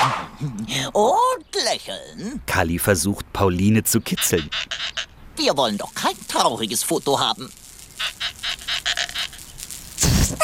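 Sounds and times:
speech: 0:00.8 - 0:08.6
squeaking balloon: 0:04.2 - 0:05.1, 0:08.0 - 0:10.4.

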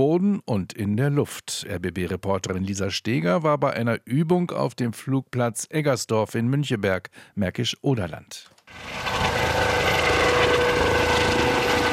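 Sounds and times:
speech: 0:00.0 - 0:09.9
police helicopter lifting water bucket: 0:08.7 - 0:11.9.

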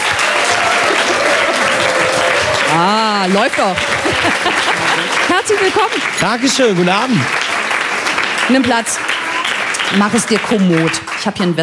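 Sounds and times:
audience applause for the first guest of an evening TV talk show in a rooftop lounge: 0:00.0 - 0:11.6
laughter: 0:00.3 - 0:06.2
speech: 0:02.7 - 0:04.5, 0:05.4 - 0:07.6, 0:08.5 - 0:09.2, 0:09.9 - 0:11.6.

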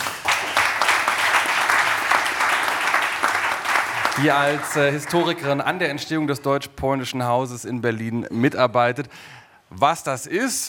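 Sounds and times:
audience applause at an evening panel event: 0:00.0 - 0:06.2
speech: 0:04.2 - 0:10.6.

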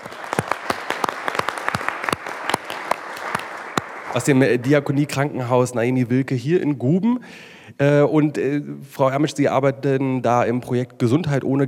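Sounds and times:
audience applause: 0:00.0 - 0:04.7
speech: 0:04.1 - 0:11.6.

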